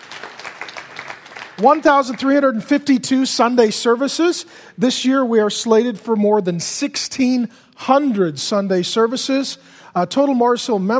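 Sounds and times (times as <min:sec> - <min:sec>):
church congregation clapping at Mars Hill during a Sunday service: 0:00.0 - 0:02.8
speech: 0:01.6 - 0:10.9.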